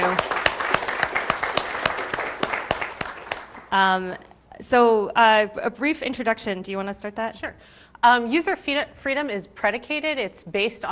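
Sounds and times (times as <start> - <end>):
audience applause: 0.0 - 3.7
speech: 3.7 - 10.9.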